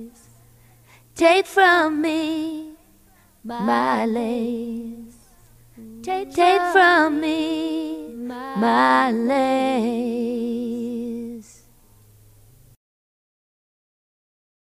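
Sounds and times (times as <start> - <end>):
a cappella duet chorus singing: 0.0 - 0.3, 1.2 - 11.7.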